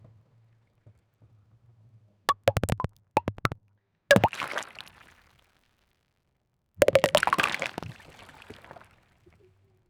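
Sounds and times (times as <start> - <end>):
small rubber pool balls: 2.3 - 4.6, 6.8 - 7.8.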